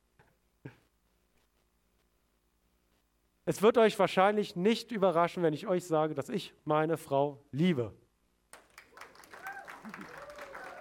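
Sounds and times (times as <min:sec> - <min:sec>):
speech: 0:03.5 - 0:08.0
audience applause: 0:08.6 - 0:10.7.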